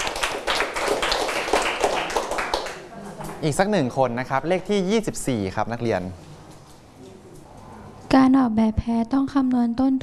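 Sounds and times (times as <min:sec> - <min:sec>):
classroom students clapping: 0:00.0 - 0:03.4
speech: 0:03.4 - 0:06.2, 0:08.3 - 0:10.0.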